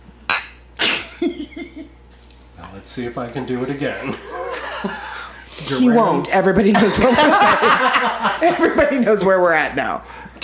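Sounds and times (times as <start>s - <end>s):
glass clink: 0.3s - 0.6s
speech: 2.8s - 5.0s, 5.7s - 10.4s
laughter: 4.0s - 5.3s, 6.7s - 8.9s.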